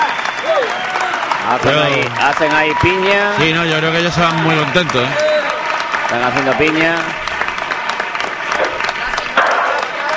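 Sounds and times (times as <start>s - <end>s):
audience applause: 0.0s - 10.1s
speech: 1.5s - 5.3s, 6.1s - 7.2s.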